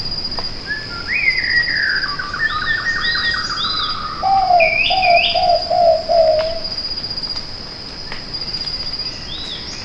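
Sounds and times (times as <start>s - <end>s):
whiskered pitta giving low whistled notes: 0.7s - 6.6s.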